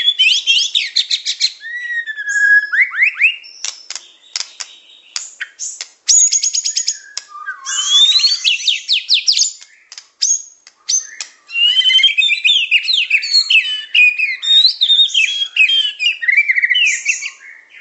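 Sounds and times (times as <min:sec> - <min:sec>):
songbird chirps and trills: 0:00.0 - 0:17.7.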